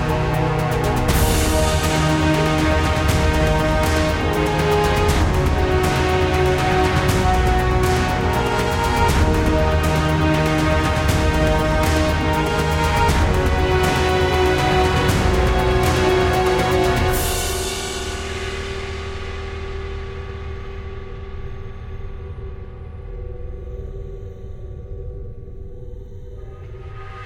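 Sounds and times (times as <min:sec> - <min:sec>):
vehicle journey music: 0:00.0 - 0:20.6.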